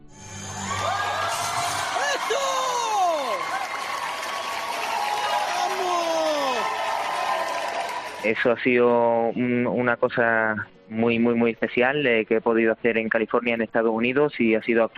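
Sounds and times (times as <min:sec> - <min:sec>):
large audience cheering: 0:00.2 - 0:08.4
excited shouts and whoops: 0:00.4 - 0:08.3
large audience clapping: 0:02.0 - 0:08.3
speech: 0:08.2 - 0:14.9.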